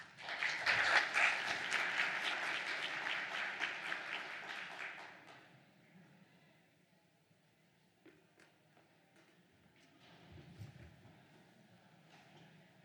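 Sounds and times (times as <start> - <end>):
audience applauding to welcome a speaker at a Texas real property law seminar: 0.0 - 5.2.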